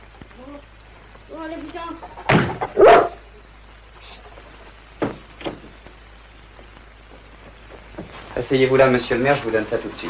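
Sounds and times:
speech: 1.3s - 3.1s, 8.4s - 10.0s
dog barking: 2.7s - 3.2s.

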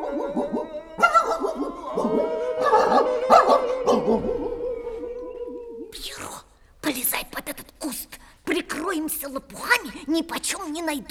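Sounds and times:
police dogs barking and yelping: 0.0s - 5.9s
speech: 10.2s - 11.0s.

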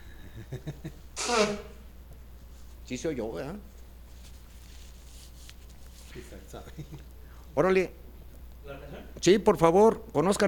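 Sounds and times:
speech: 0.5s - 1.7s, 2.9s - 3.7s, 6.2s - 8.0s, 8.6s - 10.4s
person sneezing: 1.2s - 1.8s
short catching breaths before a sneeze: 7.1s - 7.6s.

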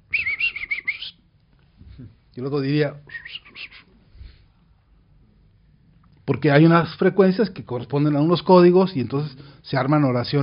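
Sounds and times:
person whistling in imitation of a whistled language: 0.1s - 1.1s
speech: 2.0s - 3.3s, 6.3s - 10.4s.

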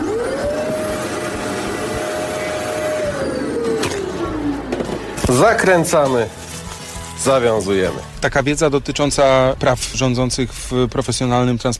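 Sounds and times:
vacuum cleaner sucking air from a bag of folded clothes: 0.0s - 5.3s
speech: 5.3s - 6.4s, 7.2s - 11.7s.

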